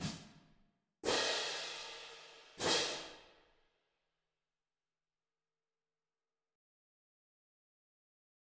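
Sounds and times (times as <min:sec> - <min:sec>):
cymbals: 0:01.0 - 0:03.2.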